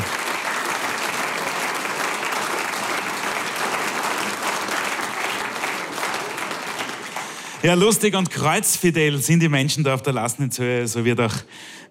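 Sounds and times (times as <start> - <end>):
applause: 0.0 - 8.6
speech: 7.6 - 11.8.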